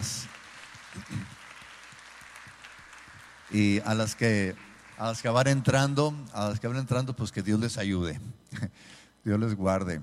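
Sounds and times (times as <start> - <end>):
audience applauding: 0.0 - 6.4
speech: 3.5 - 10.0.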